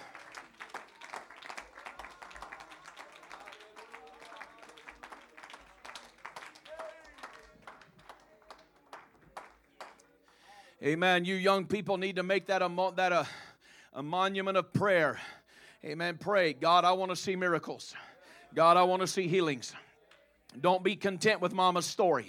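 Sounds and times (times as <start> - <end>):
audience clapping hands: 0.0 - 10.5
speech: 10.8 - 13.4, 14.0 - 19.8, 20.6 - 22.2.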